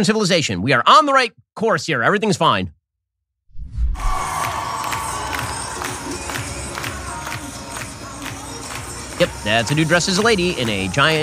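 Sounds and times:
speech: 0.0 - 2.8, 9.4 - 11.2
large crowd cheering and whooping: 4.0 - 9.8
crowd clapping: 4.1 - 11.2.

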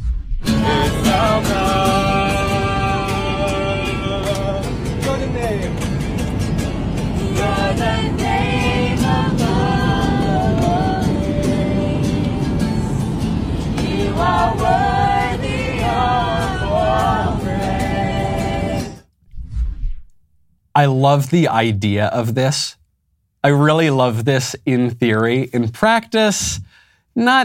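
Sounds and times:
group of Christian singers singing modern worship music on an airplane: 0.4 - 19.1
guitar playing modern worship music on an airplane: 0.5 - 19.0
speech: 20.8 - 22.8, 23.4 - 27.4.

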